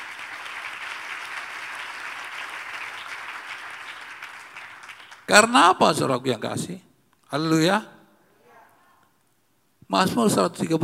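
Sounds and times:
audience clapping hands: 0.0s - 5.6s
speech: 5.3s - 8.0s, 9.9s - 10.8s.

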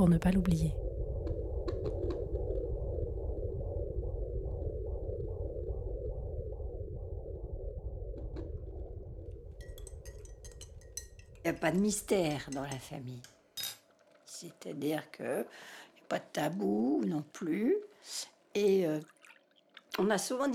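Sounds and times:
speech: 0.0s - 0.8s, 11.4s - 13.3s, 14.4s - 19.2s, 20.0s - 20.5s
constant low rumble: 0.0s - 12.2s
fetal heartbeat through a fetal Doppler: 0.7s - 9.6s.

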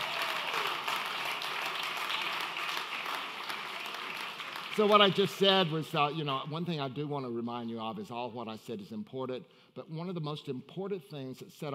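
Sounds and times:
audience applause: 0.0s - 5.8s
speech: 4.8s - 11.7s.

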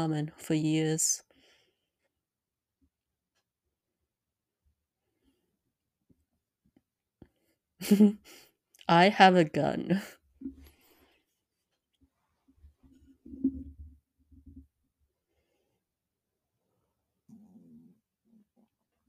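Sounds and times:
speech: 0.0s - 1.2s, 7.8s - 10.6s
stomach rumbling: 12.6s - 14.7s.

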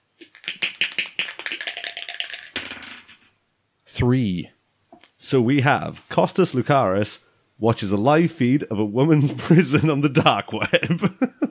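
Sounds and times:
20-sided die rattling across a hard surface: 0.2s - 3.3s
speech: 4.0s - 4.6s, 5.3s - 11.4s.

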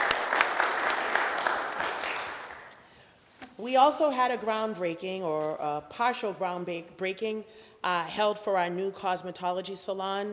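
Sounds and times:
audience applause: 0.0s - 2.7s
speech: 3.6s - 10.3s.

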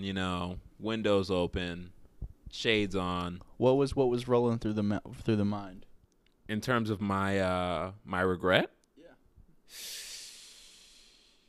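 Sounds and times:
speech: 0.0s - 5.9s, 6.5s - 8.8s, 9.7s - 10.0s
deep breath: 9.7s - 11.4s.

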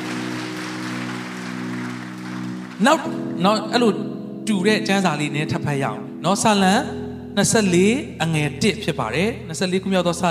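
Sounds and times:
church congregation clapping hands in praise during a Sunday sermon: 0.0s - 3.3s
speech: 2.8s - 10.2s.

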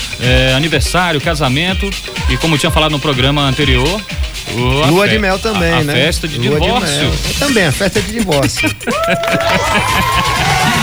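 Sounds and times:
speech: 0.2s - 10.8s
laughter: 5.1s - 10.8s
crowd clapping and cheering: 8.0s - 10.8s.

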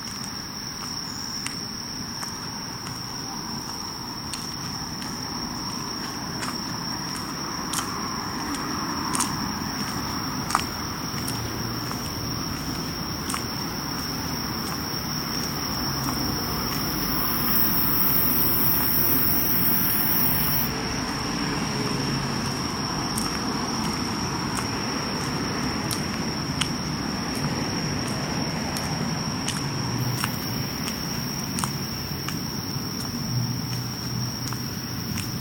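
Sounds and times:
fainter insect chirring: 0.1s - 20.7s, 30.0s - 35.3s
low rumbling traffic-like noise: 0.5s - 35.3s
insects calling on a summer night: 10.7s - 20.7s, 30.0s - 32.2s.

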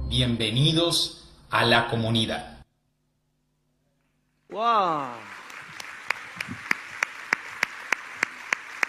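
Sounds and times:
speech: 0.2s - 2.5s, 4.5s - 5.3s
audience clapping in unison: 4.5s - 8.8s.

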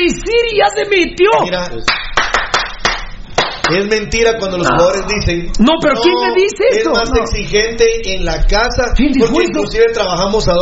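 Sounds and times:
speech: 0.1s - 2.1s, 3.7s - 10.6s
hand clapping: 1.8s - 3.9s.

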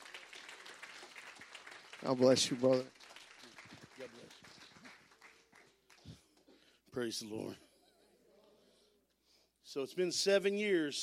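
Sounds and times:
crowd applauding: 0.0s - 6.5s
speech: 2.0s - 3.0s, 7.0s - 7.6s, 9.8s - 11.0s.

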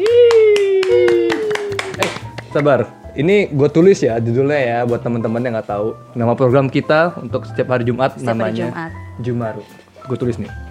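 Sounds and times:
hand claps: 0.0s - 2.8s
speech: 2.6s - 10.6s.

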